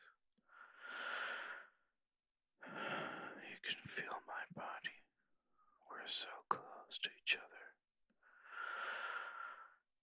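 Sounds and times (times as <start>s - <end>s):
slow, soft slightly wheezy human breathing: 0.5s - 1.8s, 2.6s - 3.5s, 8.2s - 9.8s
speech: 3.7s - 4.6s, 6.1s - 7.5s.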